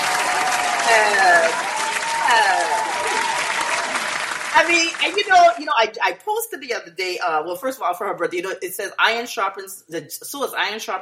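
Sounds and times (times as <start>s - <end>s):
excited voices cheering and whooping: 0.0s - 4.4s
crowd applause: 0.0s - 5.6s
speech: 0.9s - 1.7s, 4.6s - 11.0s.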